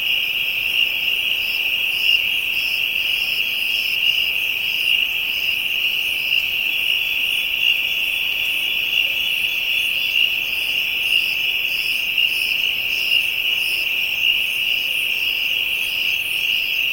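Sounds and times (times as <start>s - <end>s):
African insects: 0.0s - 16.9s.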